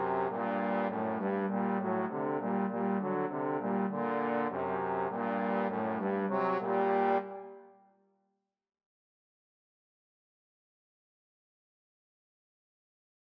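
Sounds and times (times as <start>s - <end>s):
trombone trio: 0.1s - 7.4s.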